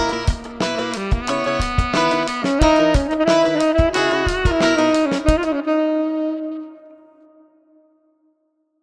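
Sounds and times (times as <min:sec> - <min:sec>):
guitar: 0:00.0 - 0:05.8
chilled saxophone: 0:00.0 - 0:08.0.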